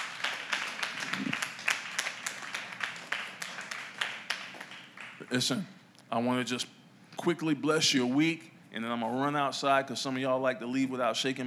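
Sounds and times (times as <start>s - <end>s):
audience clapping: 0.0s - 5.6s
speech: 5.3s - 11.4s.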